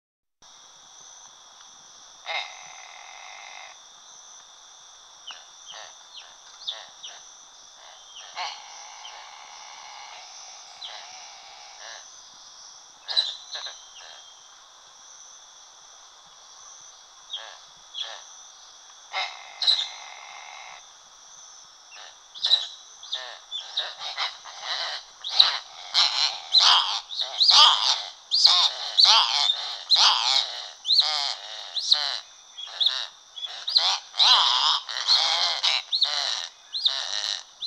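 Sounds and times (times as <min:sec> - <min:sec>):
gaviao-belo hawk calling: 0:07.8 - 0:12.0, 0:19.1 - 0:20.8, 0:22.0 - 0:37.6.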